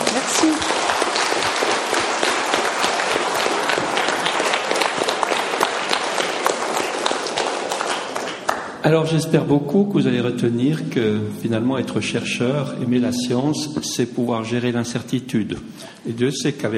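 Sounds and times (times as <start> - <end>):
audience applause: 0.0 - 8.8
speech: 8.9 - 16.7.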